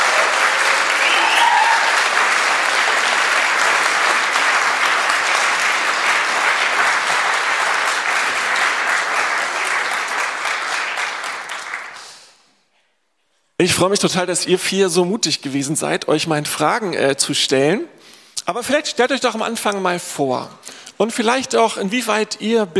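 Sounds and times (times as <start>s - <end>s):
crowd clapping warmly: 0.0s - 12.4s
speech: 13.6s - 22.7s.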